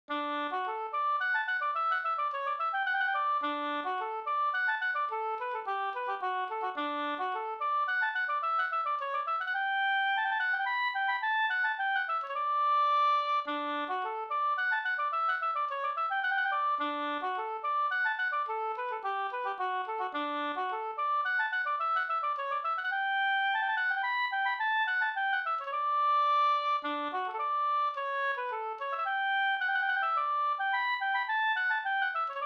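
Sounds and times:
polska folk tune: 0.1s - 32.4s.

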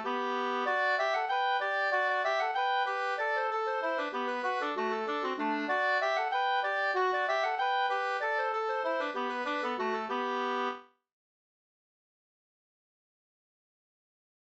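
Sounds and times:
engelska folk dance tune for three pairs: 0.0s - 10.8s.

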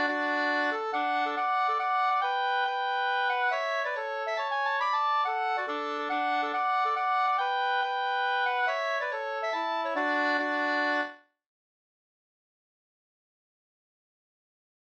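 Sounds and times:
mazurka music: 0.0s - 11.2s.

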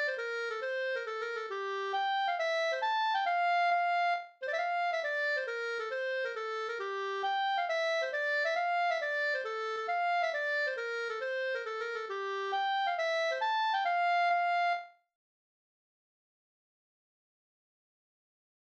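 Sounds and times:
hambo polska folk dance tune: 0.0s - 14.9s.

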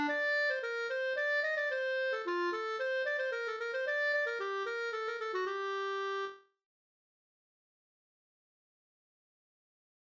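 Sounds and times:
polska folk dance tune: 0.0s - 5.2s.

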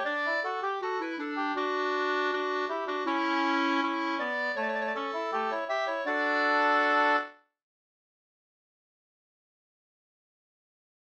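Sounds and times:
folk walking tune: 0.0s - 7.4s.

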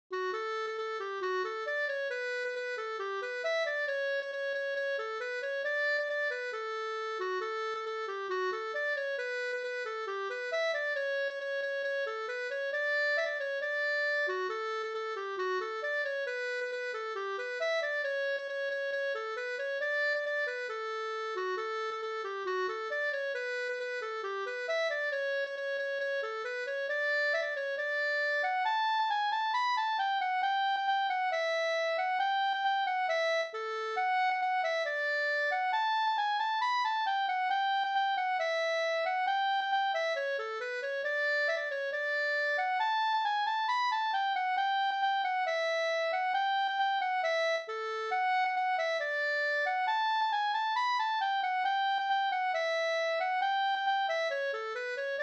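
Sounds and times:
polka music: 0.1s - 55.2s.

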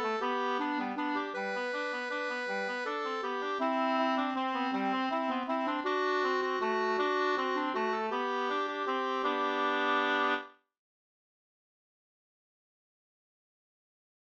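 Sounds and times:
two-part wedding waltz: 0.0s - 10.5s.

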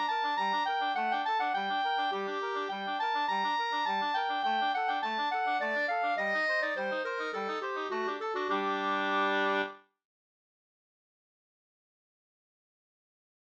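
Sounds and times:
slangpolska folk dance tune: 0.0s - 9.8s.

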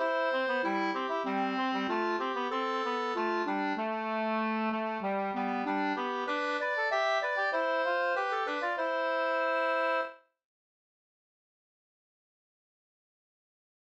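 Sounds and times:
folk walking tune: 0.0s - 10.2s.

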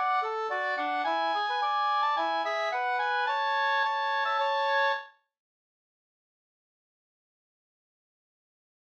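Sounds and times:
folk walking tune: 0.0s - 5.0s.

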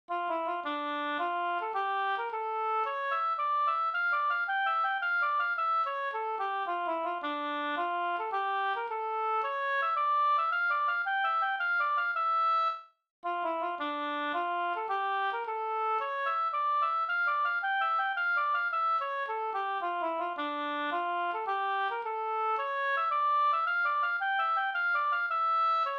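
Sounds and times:
polska triolpolska folk dance tune: 0.1s - 25.9s.

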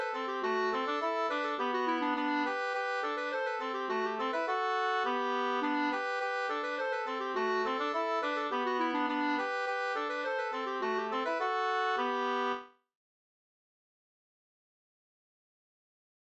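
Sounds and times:
two-part polska dance tune: 0.0s - 12.6s.

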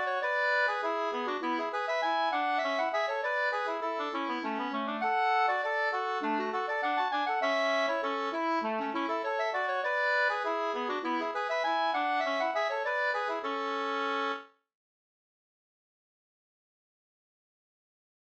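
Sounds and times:
walking tune in A major: 0.0s - 14.5s.

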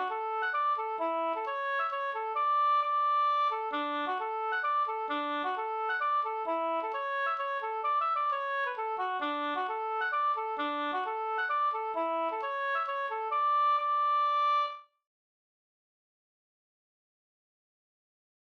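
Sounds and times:
hambo polska folk dance tune: 0.0s - 14.8s.

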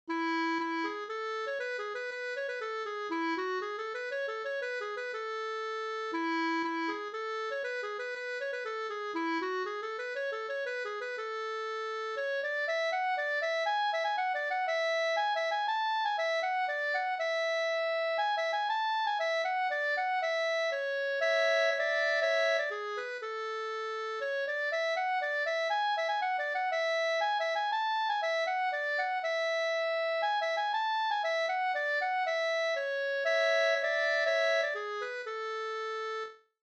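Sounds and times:
polska springlek folk dance music: 0.1s - 36.0s.

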